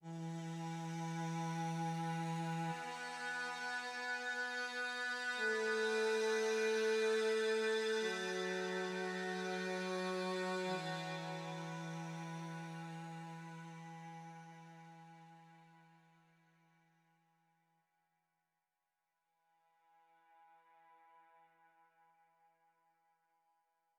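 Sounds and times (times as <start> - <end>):
high cello: 0.0 - 16.0.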